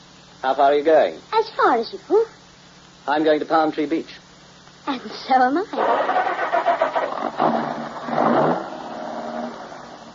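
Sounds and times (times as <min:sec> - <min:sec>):
speech: 0:00.4 - 0:02.4, 0:03.1 - 0:04.2, 0:04.8 - 0:06.3
car engine cranking, starting and idling: 0:05.8 - 0:09.0.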